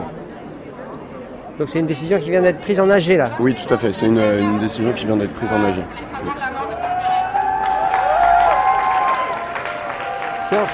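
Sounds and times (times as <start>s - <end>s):
speech: 1.6s - 6.7s, 10.5s - 10.7s
voices cheering and calling out: 5.4s - 10.7s
crowd clapping: 6.2s - 10.7s.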